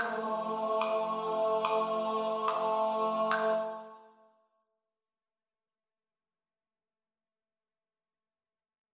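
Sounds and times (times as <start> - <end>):
tenor voice: 0.0 - 3.9.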